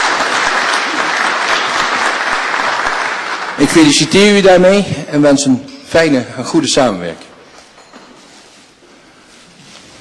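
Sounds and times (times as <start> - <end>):
applause from the council chamber for newly sworn-in members of the Raad van Almanswaard: 0.0 - 4.1
speech: 3.6 - 7.3.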